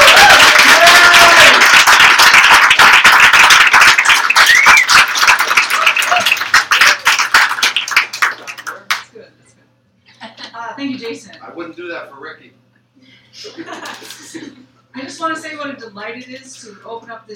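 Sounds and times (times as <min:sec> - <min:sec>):
people cheering: 0:00.0 - 0:08.9
audience applause for a poet at a poetry reading: 0:00.0 - 0:09.0
speech: 0:16.0 - 0:17.3.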